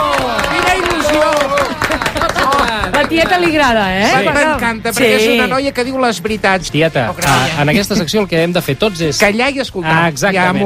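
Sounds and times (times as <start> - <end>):
audience applause: 0.0 - 3.8
speech: 3.1 - 10.6.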